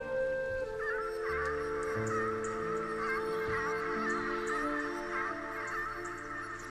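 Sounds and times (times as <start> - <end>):
birds: 0.0 - 6.6.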